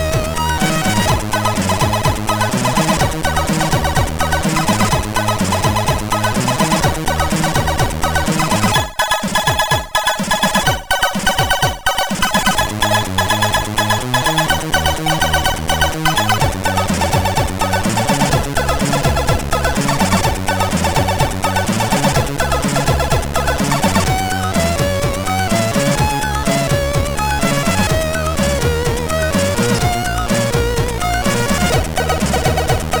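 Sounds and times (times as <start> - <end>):
tune on a MOS6581R3 SID chip: 0.0 - 32.9.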